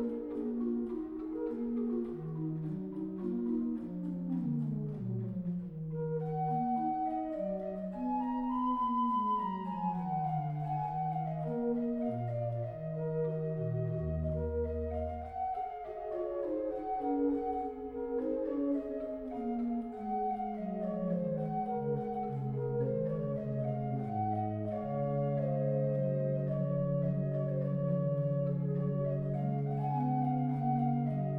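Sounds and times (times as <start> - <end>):
pastorale played on an organ with tremulant: 0.0 - 31.3.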